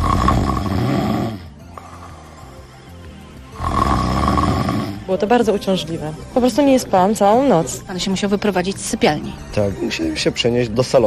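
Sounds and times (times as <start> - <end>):
person snoring: 0.0 - 5.2
speech: 5.1 - 11.0.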